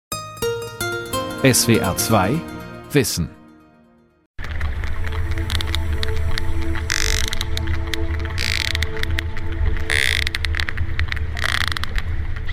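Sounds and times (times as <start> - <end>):
speech: 1.4 - 3.4
sperm whale echolocation clicks: 4.5 - 12.5.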